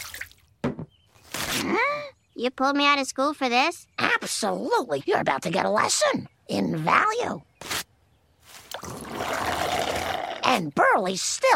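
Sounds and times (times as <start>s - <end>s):
blue liquid spilling and splashing: 0.0s - 0.4s, 8.7s - 10.4s
speech: 1.6s - 7.5s, 10.5s - 11.5s.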